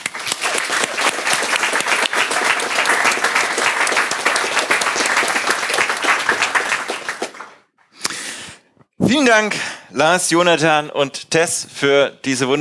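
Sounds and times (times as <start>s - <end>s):
audience applause: 0.0s - 7.7s
speech: 9.1s - 12.5s.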